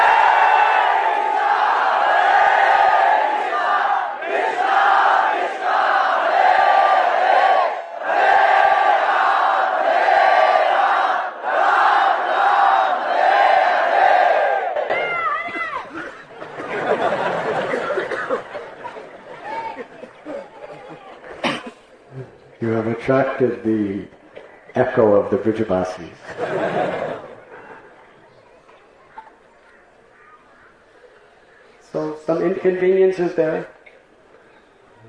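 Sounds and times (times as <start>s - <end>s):
large crowd loudly chanting: 0.0s - 15.0s
laughter: 15.5s - 22.5s, 26.2s - 28.4s
speech: 23.4s - 24.2s, 24.8s - 26.8s, 32.6s - 33.8s.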